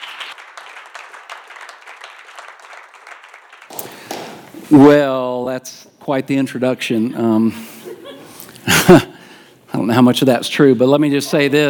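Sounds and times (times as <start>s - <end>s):
church congregation applauding to welcome a guest pastor: 0.0s - 4.6s
speech: 4.7s - 7.7s, 10.0s - 11.6s.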